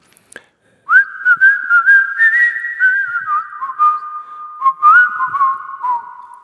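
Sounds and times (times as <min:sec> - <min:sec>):
person whistling a phone advertisement jingle: 0:00.9 - 0:06.4.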